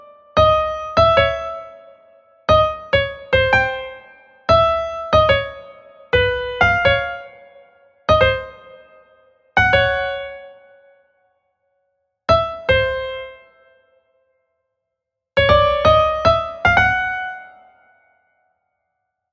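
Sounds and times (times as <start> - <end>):
piano party music: 0.0 - 1.8, 2.5 - 7.5, 8.1 - 9.0, 9.6 - 10.6, 12.3 - 13.5, 15.4 - 17.6.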